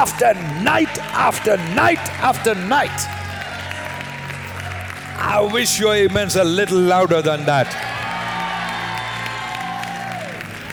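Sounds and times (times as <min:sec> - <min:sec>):
speech: 0:00.0 - 0:03.2, 0:05.2 - 0:08.0
people clapping: 0:00.0 - 0:10.7.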